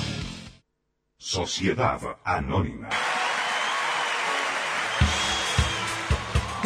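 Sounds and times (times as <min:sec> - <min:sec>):
speech: 0:01.4 - 0:03.1
live concert audience applause: 0:02.9 - 0:06.6.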